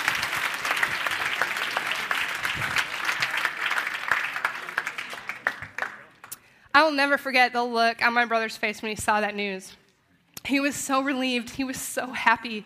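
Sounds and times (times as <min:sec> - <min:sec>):
audience applause: 0:00.0 - 0:06.4
speech: 0:06.8 - 0:09.8, 0:10.5 - 0:12.6.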